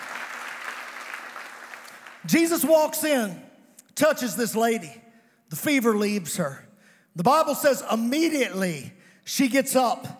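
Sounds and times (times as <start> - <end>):
crowd clapping: 0.0 - 2.5
speech: 2.2 - 3.4, 4.0 - 6.6, 7.2 - 10.1.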